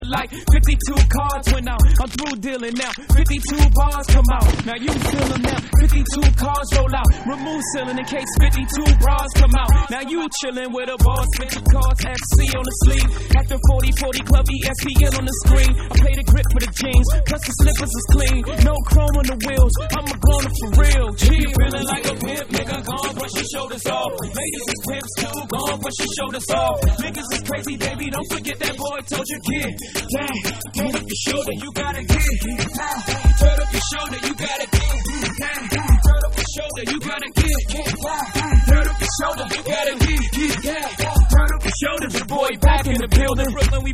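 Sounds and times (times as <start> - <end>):
reggae mix: 0.0 - 43.9.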